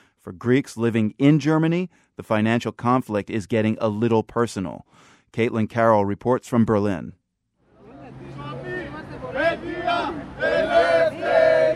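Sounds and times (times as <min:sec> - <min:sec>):
speech: 0:00.2 - 0:07.2
students chanting at a street protest: 0:08.5 - 0:11.7.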